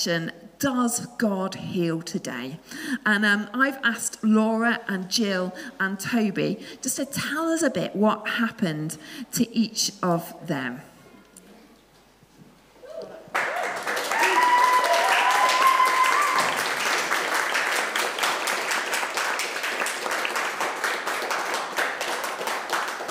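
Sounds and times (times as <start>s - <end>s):
speech: 0.0s - 10.9s
audience applause: 13.3s - 23.1s.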